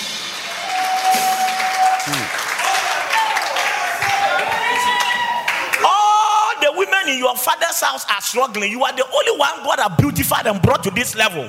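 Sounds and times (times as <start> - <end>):
audience clapping: 0.0 - 5.9
speech: 7.1 - 11.4.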